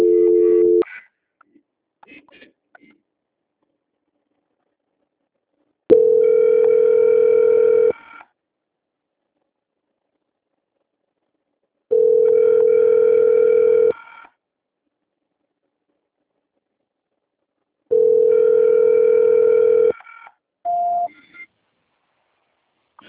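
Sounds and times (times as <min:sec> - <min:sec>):
telephone ringback tone while waiting for a call transfer: 0:00.0 - 0:00.8, 0:05.9 - 0:08.0, 0:11.9 - 0:14.0, 0:17.9 - 0:20.0.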